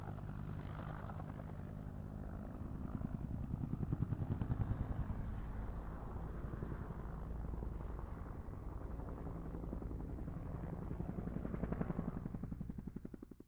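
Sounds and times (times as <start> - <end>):
1967 Bell UH-1 Iroquois helicopter passing: 0.0 - 13.4.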